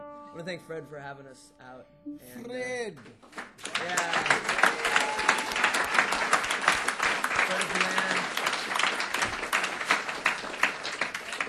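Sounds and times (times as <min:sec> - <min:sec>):
speech: 0:00.5 - 0:04.5
crowd applauding: 0:03.3 - 0:11.4
faint voices and whoops: 0:03.9 - 0:05.8.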